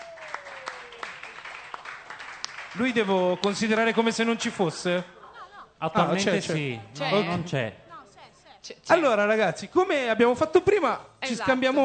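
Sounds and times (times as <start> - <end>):
audience applause: 0.0 - 4.8
speech: 2.8 - 5.2, 5.8 - 7.8, 8.6 - 11.8
laughter: 4.7 - 6.6.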